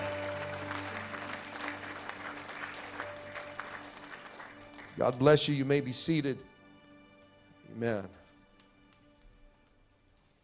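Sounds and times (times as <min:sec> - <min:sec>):
audience clapping hands: 0:00.0 - 0:06.0
speech: 0:05.0 - 0:06.5, 0:07.8 - 0:08.2.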